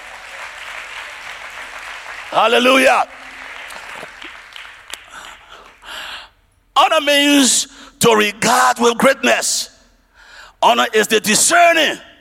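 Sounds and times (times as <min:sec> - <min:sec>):
audience clapping: 0:00.0 - 0:05.9
speech: 0:02.3 - 0:03.2, 0:06.8 - 0:09.7, 0:10.6 - 0:12.1.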